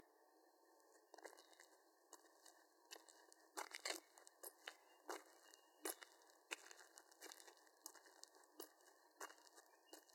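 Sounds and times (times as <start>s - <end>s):
heavy shoes on dirt road: 1.1s - 10.1s.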